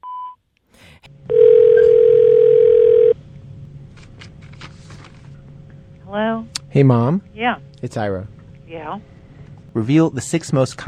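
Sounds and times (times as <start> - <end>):
answering machine tone: 1.3 - 3.2
speech: 6.1 - 9.1, 9.8 - 10.8.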